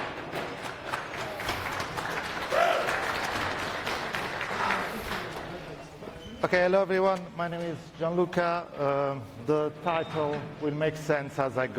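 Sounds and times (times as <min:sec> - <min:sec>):
audience applause: 0:00.0 - 0:05.6
speech: 0:06.4 - 0:11.7.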